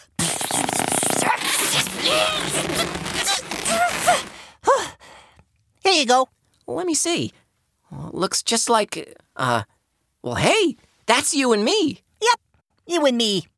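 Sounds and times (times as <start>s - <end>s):
rubbery balloon squeaking as it is twisted into a shape: 0.2s - 4.4s
speech: 6.0s - 7.4s, 8.2s - 13.5s.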